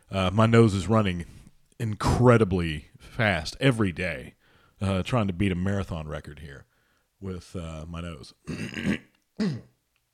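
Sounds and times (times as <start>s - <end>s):
speech: 0.1s - 9.7s
throat clearing: 8.4s - 9.8s.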